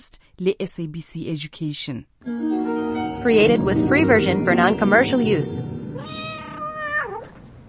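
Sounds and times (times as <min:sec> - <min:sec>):
speech: 0:00.0 - 0:05.8
cat meowing: 0:06.0 - 0:07.4.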